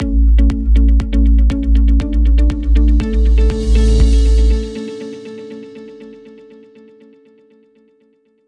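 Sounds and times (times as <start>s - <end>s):
corporate transition music: 0.0s - 6.2s.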